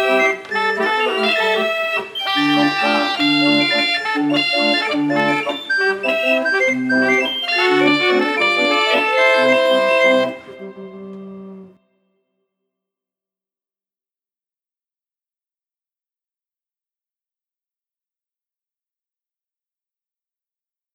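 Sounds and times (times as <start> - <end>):
Tivoli mechanical organ playing: 0.0 - 11.7.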